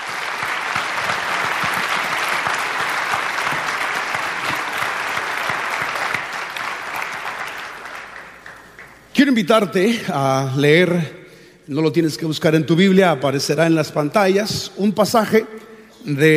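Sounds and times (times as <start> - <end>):
audience applause: 0.0 - 9.1
speech: 9.2 - 16.3.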